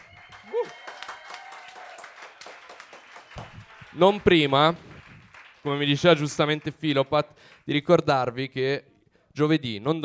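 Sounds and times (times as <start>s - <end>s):
audience applause: 0.0s - 7.6s
speech: 4.0s - 4.9s, 5.6s - 10.0s.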